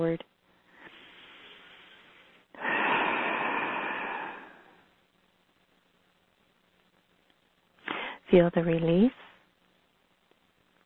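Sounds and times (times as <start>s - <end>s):
speech: 0.0s - 0.3s, 8.3s - 9.3s
slow deep breath during a guided relaxation exercise: 0.7s - 4.9s, 7.8s - 8.2s.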